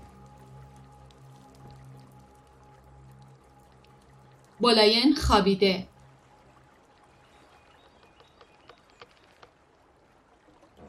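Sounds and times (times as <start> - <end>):
water drips and splashes: 0.0 - 10.8
speech: 4.6 - 5.9
paddle moving through water as someone rows a boat: 6.4 - 10.8.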